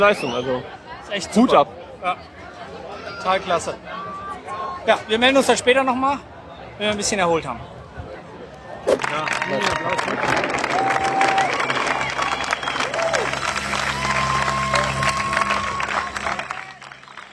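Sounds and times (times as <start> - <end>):
speech: 0.0 - 2.5, 3.2 - 3.9, 4.8 - 7.8, 9.1 - 10.7
spectators cheering and clapping at triathlon race: 8.9 - 17.3.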